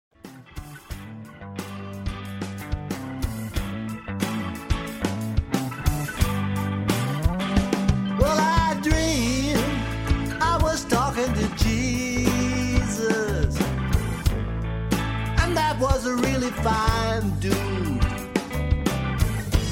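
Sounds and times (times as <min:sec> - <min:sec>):
bass: 0:00.1 - 0:19.7
drums: 0:00.1 - 0:19.7
guitar: 0:00.1 - 0:19.7
organ: 0:00.3 - 0:19.7
vocals: 0:08.0 - 0:14.2, 0:15.2 - 0:18.5, 0:19.5 - 0:19.7.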